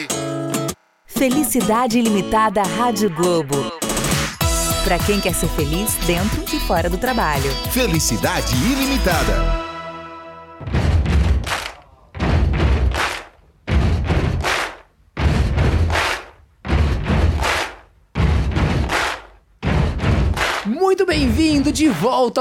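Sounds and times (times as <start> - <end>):
speech: 1.2 - 3.8, 4.9 - 9.6, 21.7 - 22.3
stomp-stomp-clap rock song beat: 3.6 - 9.6, 10.6 - 22.2.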